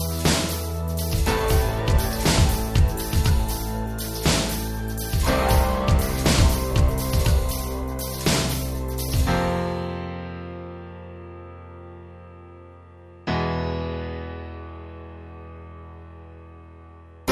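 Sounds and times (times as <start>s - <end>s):
ambient thriller music: 0.0s - 10.7s.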